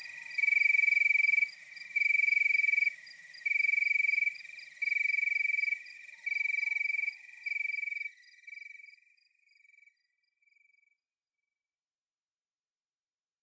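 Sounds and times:
cricket chirping: 0.0 - 9.9.

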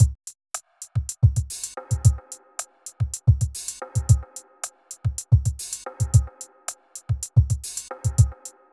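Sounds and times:
R&B drum kit at 110 bpm: 0.0 - 8.5.

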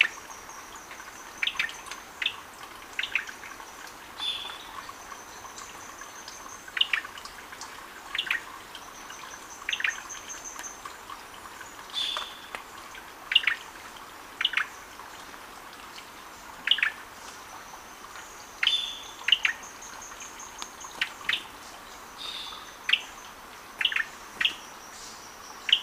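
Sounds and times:
Gray-breasted Wood-Wren singing in lower subtropical Ecuador: 0.0 - 2.4, 3.0 - 7.4, 8.1 - 11.0, 11.6 - 12.6, 13.3 - 13.6, 14.4 - 14.9, 16.6 - 25.8.

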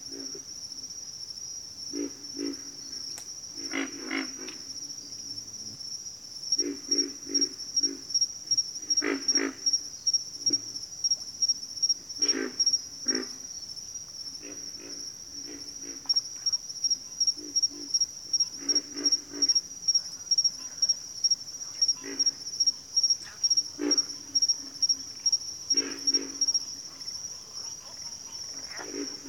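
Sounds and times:
steady high-pitched insect trill: 0.0 - 29.2
pig frogs giving low rough grunts: 1.9 - 2.9, 3.6 - 4.8, 6.6 - 10.8, 12.1 - 13.5, 14.3 - 29.2.

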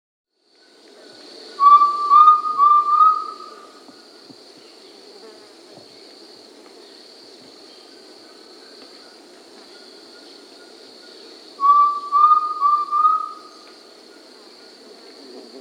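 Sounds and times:
Undulated tinamou giving slurred rising whistled calls in South America: 1.6 - 3.8, 11.6 - 13.6.

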